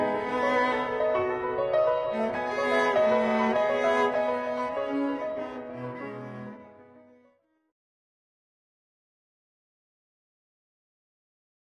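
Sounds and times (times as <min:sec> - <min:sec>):
piano in a duet with cello: 0:00.0 - 0:07.4
cello in a duet with piano: 0:00.0 - 0:07.5.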